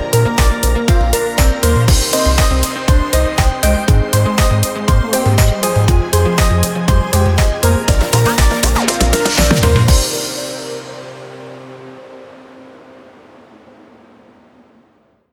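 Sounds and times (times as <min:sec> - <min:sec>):
modern tech pop corporate music: 0:00.0 - 0:12.2.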